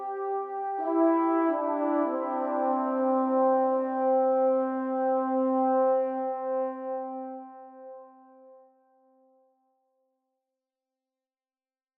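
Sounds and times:
trombone ensemble: 0.0 - 7.9.

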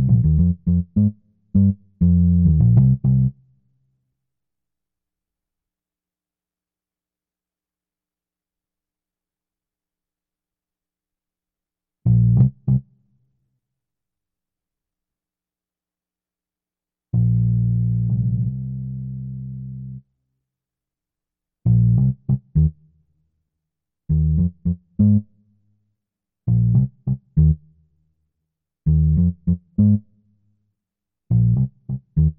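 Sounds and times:
bass: 0.0 - 3.7, 12.0 - 13.2, 17.1 - 20.1, 21.6 - 23.2, 24.1 - 25.6, 26.5 - 28.0, 28.8 - 30.5, 31.3 - 32.3.

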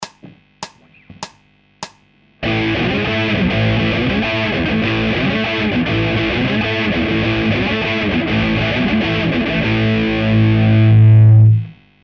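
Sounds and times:
hard guitar loops: 0.0 - 11.0.

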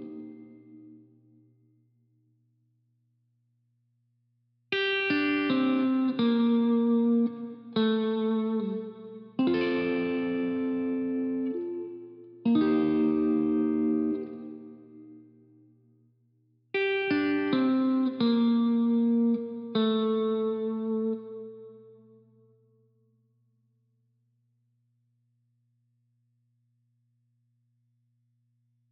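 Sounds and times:
guitar fills: 0.0 - 1.1, 4.8 - 15.6, 16.8 - 22.2.

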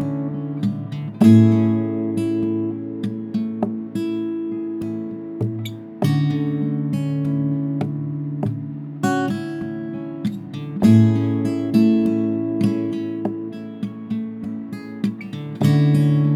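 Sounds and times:
mellow acoustic guitar: 0.0 - 16.3.

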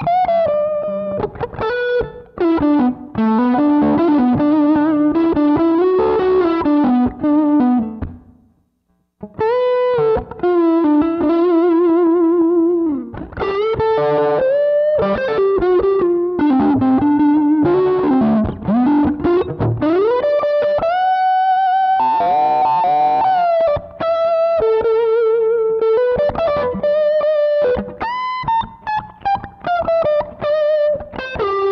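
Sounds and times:
lead guitar: 0.0 - 8.4, 9.2 - 31.7.

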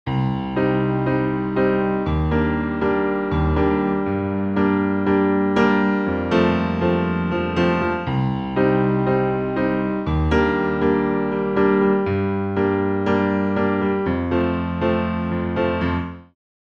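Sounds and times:
piano loop: 0.1 - 16.4.

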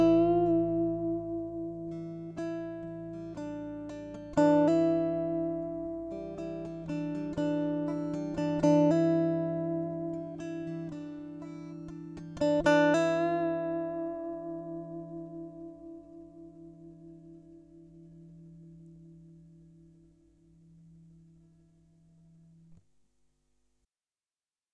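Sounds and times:
guitar arpeggios: 0.0 - 22.8.

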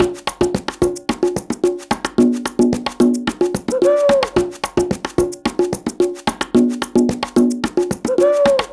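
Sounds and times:
beats: 0.0 - 8.7.

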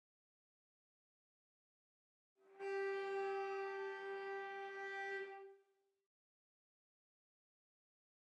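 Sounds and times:
sustained cello harmonics: 2.5 - 5.6.

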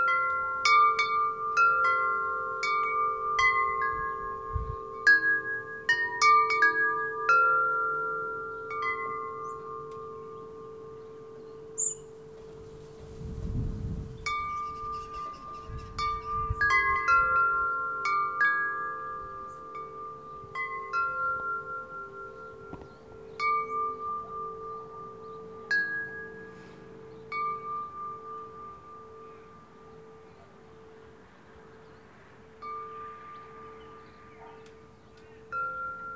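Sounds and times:
wind chimes: 0.0 - 36.1
local traffic: 24.8 - 35.5
dog barking: 34.4 - 34.7.

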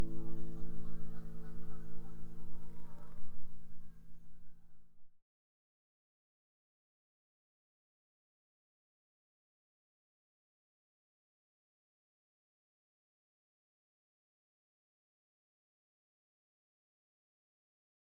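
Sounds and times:
guitar: 0.0 - 3.7.

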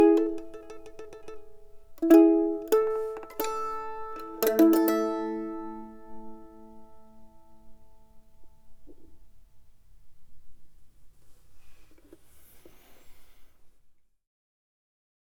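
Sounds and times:
dry mandolin playing a sarabande: 0.0 - 8.8.

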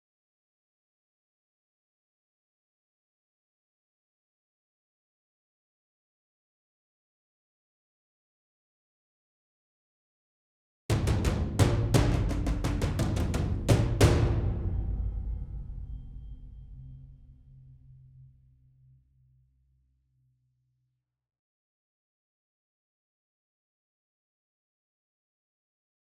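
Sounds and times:
percussion: 10.9 - 18.6.

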